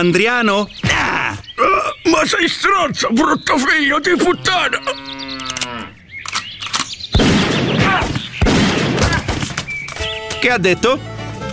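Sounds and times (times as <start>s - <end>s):
speech: 0.0s - 1.1s, 2.0s - 5.2s, 10.4s - 11.1s
cow mooing: 4.1s - 6.0s
brief clicks: 5.4s - 7.0s
gunshots fired by a cowboy beside his pick-up: 7.1s - 9.8s.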